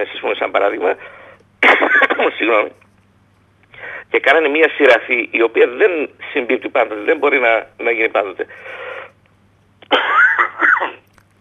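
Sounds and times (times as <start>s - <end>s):
speech: 0.0s - 2.8s, 4.1s - 8.9s
man coughing from an allergy: 1.6s - 2.4s, 9.8s - 11.0s.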